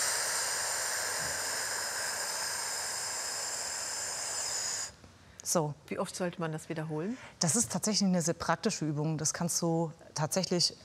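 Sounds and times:
slow exhale during breathing exercise: 0.0 - 5.0
speech: 5.5 - 10.8.

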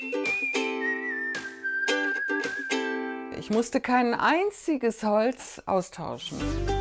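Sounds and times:
person whistling to mimic drafty cold wind: 0.0 - 3.0
speech: 3.5 - 6.7.

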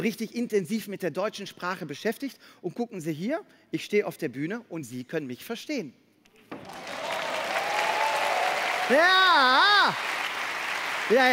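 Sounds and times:
speech: 0.0 - 6.8, 8.9 - 10.1, 11.1 - 11.3
audience clapping at a stage show: 6.5 - 11.3.

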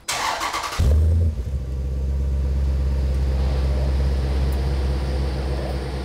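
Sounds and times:
car engine revving: 0.1 - 6.0.

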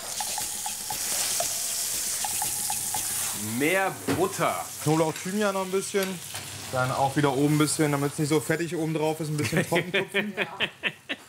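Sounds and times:
pike-perch fillet frying in a pan: 0.0 - 8.5
speech: 3.4 - 10.9
laughter: 9.4 - 11.2.

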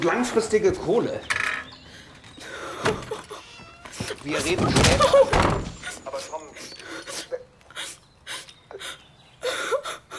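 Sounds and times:
speech: 0.0 - 1.5, 2.8 - 3.2, 4.2 - 6.6
person crying in sobs with whimpering: 5.0 - 10.1.

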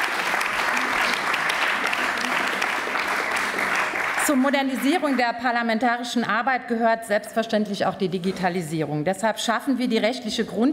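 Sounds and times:
applause in parliament: 0.0 - 5.5
speech: 4.3 - 10.7.

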